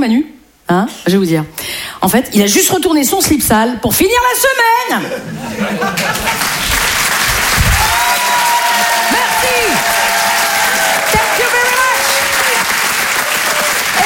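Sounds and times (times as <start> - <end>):
speech: 0.0 - 6.7
laughter: 4.9 - 7.0
audience applauding: 5.9 - 14.0.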